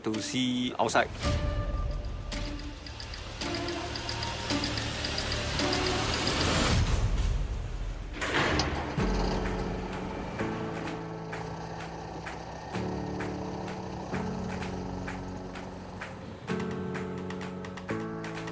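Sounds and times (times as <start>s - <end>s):
speech: 0.0s - 1.6s
steady mechanical tones: 2.0s - 6.8s, 8.2s - 16.7s
engine of an enclosed prison transport vehicle: 2.0s - 6.9s, 8.1s - 18.4s.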